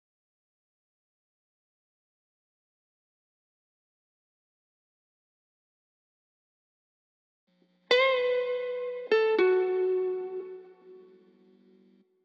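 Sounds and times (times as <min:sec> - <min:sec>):
lead guitar melody in A major: 0:07.9 - 0:12.0.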